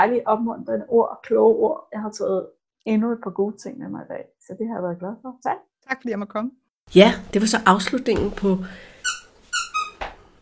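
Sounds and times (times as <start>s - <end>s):
speech: 0.0s - 9.2s
squeaky dog toy being chewed by a puppy: 9.0s - 10.0s.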